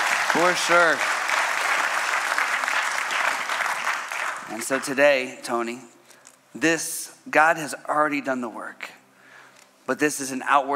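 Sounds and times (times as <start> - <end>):
audience applause: 0.0 - 4.9
speech: 0.4 - 1.2, 4.5 - 9.0, 9.9 - 10.7.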